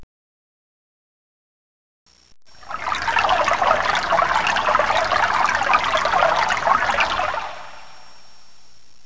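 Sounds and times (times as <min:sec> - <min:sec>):
water sound in nature: 0:02.5 - 0:08.1.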